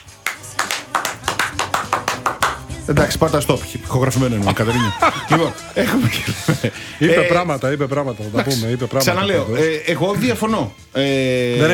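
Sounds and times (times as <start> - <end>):
rhythmic clapping from a studio audience in a Greek talk show: 0.0 - 6.2
speech: 2.9 - 11.7
laughter: 4.4 - 7.5.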